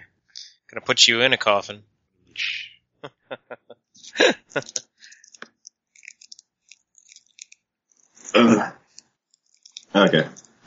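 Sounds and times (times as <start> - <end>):
speech: 0.7 - 4.8, 10.0 - 10.4
laughter: 2.4 - 5.3
person coughing: 4.1 - 4.8, 8.3 - 8.9.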